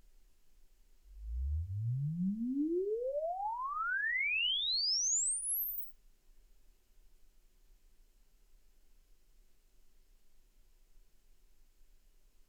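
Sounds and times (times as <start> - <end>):
uncalibrated loudspeaker sweep: 1.1 - 5.9.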